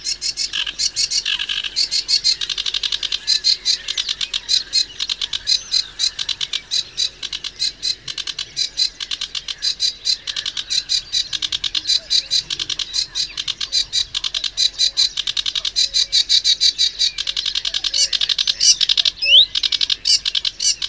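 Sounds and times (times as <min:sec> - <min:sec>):
Acrocephalus schoenobaenus singing: 0:00.0 - 0:20.8.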